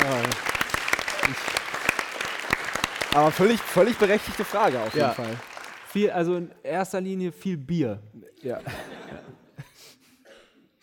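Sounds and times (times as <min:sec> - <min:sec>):
audience clapping: 0:00.0 - 0:06.4
speech: 0:03.2 - 0:08.9
laughter: 0:08.5 - 0:10.0.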